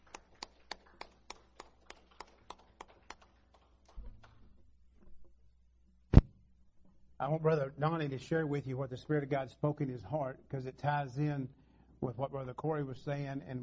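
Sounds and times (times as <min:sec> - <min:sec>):
audience clapping in praise: 0:00.0 - 0:04.5
speech: 0:07.2 - 0:13.6.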